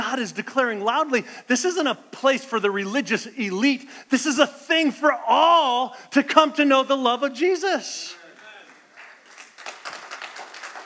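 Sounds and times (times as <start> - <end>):
speech: 0.1 - 8.2
scattered audience clapping: 8.1 - 10.8.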